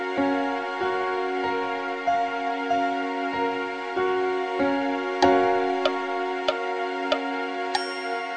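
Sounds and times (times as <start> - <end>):
major seventh chord in inversion: 0.2 - 8.2.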